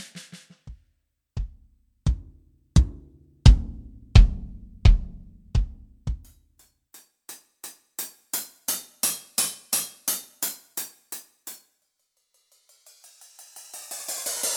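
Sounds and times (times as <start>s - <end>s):
sampled tune: 1.4s - 6.3s.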